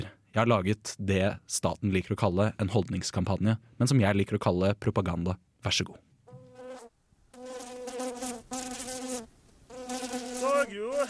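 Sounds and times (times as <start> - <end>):
speech: 0.4 - 6.0
fly buzzing: 6.3 - 11.0.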